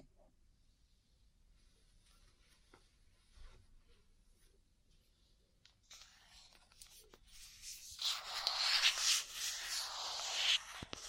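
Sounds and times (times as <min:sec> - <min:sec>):
ear cleaning and massage rubbing and rustling: 0:07.5 - 0:11.0.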